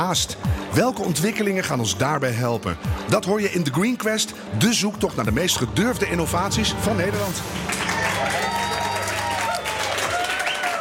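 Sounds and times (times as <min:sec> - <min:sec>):
speech: 0:00.0 - 0:08.4
crowd clapping at a New Year's event: 0:07.4 - 0:10.8.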